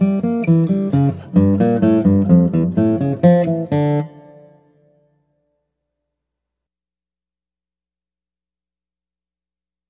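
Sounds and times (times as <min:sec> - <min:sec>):
guitar: 0:00.0 - 0:05.6.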